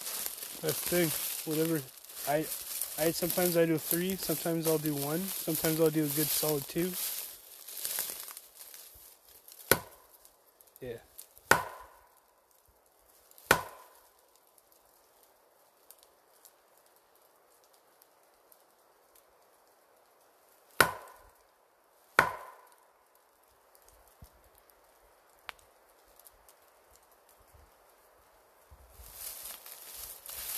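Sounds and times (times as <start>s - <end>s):
speech: 0.6s - 7.2s, 10.8s - 11.1s
wood knocks struck on trees: 9.6s - 10.0s, 11.4s - 12.0s, 13.5s - 14.0s, 20.8s - 21.2s, 22.2s - 22.7s.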